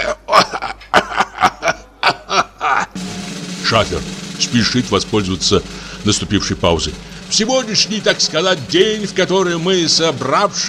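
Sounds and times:
man choking and coughing: 0.0 - 3.0
laughter: 0.0 - 7.3
speech: 3.7 - 10.6.

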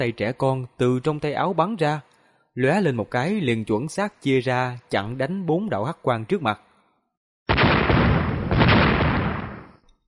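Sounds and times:
speech: 0.0 - 6.7
thunderclap explosion sound effect: 7.5 - 9.8.

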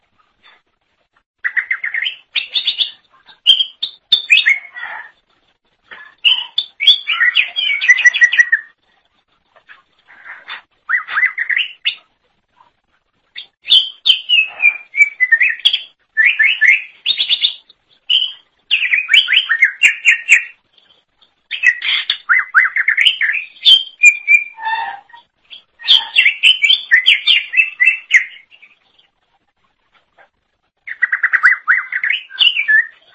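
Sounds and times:
leafbird song: 1.4 - 5.2, 5.9 - 8.8, 9.7 - 12.1, 13.4 - 29.2, 30.8 - 33.1.

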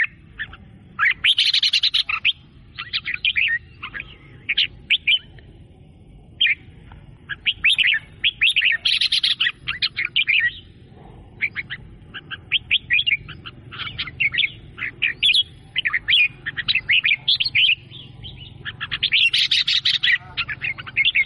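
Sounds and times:
sooty-headed bulbul singing bubbly chirping phrases: 0.0 - 21.2.

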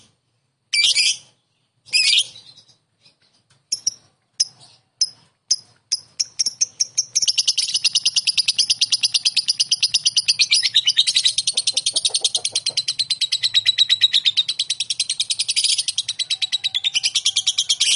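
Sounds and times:
lovebird calls: 0.7 - 17.9.

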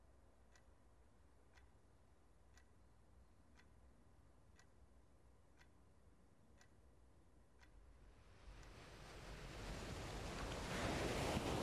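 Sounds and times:
ocean wave rolling in: 8.3 - 11.6.

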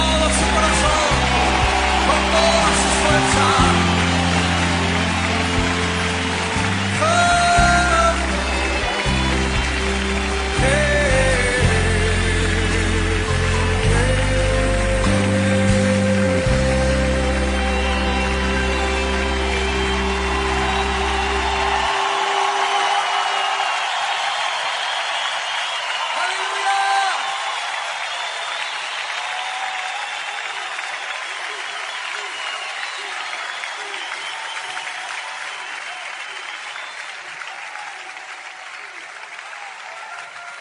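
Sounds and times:
keyboard music with deep sustained bass chords: 0.0 - 23.7
crowd clapping: 0.0 - 40.6.

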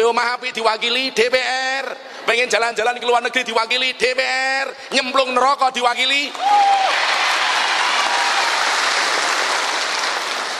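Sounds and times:
speech: 0.1 - 7.0
audience applause: 6.3 - 10.5.

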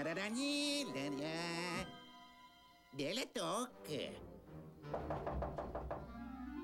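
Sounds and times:
speech: 0.1 - 1.7, 3.0 - 5.3
knocking: 4.9 - 6.2.

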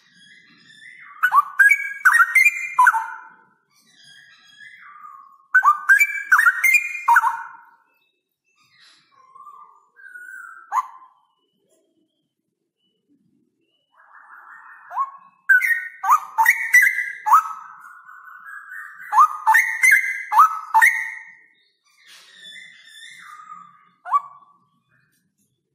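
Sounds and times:
straw-headed bulbul song: 0.0 - 8.1, 9.2 - 24.8.

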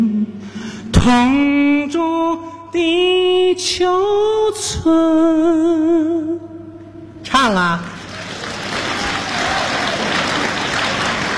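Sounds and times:
speech: 1.0 - 6.5, 7.4 - 7.9
audience applause: 7.8 - 11.3.

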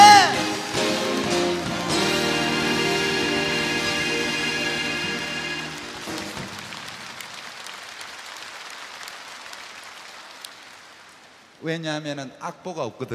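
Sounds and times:
crowd applauding for the orchestra: 0.0 - 11.5
band holding a bright sustained chord: 0.6 - 6.2
speech: 11.7 - 13.1.

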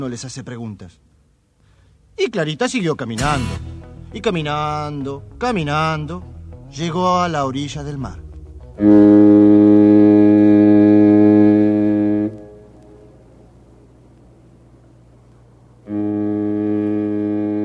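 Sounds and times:
speech: 0.0 - 1.1, 2.2 - 8.2, 8.8 - 9.1
low rumbling hum: 3.2 - 17.6
ship's horn blasts: 8.7 - 13.2, 15.8 - 17.6.

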